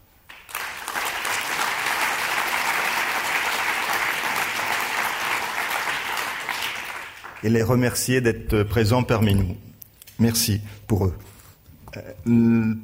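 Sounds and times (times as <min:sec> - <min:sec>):
audience applause: 0:00.3 - 0:07.6
speech: 0:07.4 - 0:11.3, 0:11.9 - 0:12.8.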